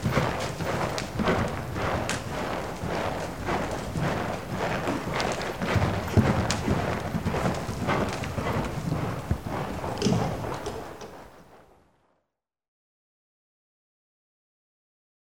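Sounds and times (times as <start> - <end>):
horse hooves clopping at a walk: 0.0 - 11.6.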